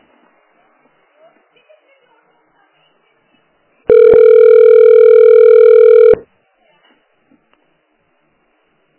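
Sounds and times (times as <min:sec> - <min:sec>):
telephone disconnect tone after a dropped call: 0:03.9 - 0:06.2.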